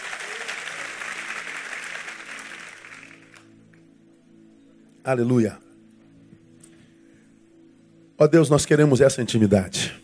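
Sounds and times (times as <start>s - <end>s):
audience applause: 0.0s - 3.5s
speech: 5.0s - 5.6s, 8.2s - 10.0s.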